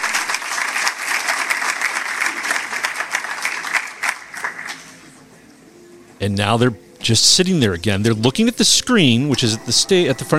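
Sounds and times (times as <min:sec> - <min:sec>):
audience applause: 0:00.0 - 0:05.2
speech: 0:06.2 - 0:10.3.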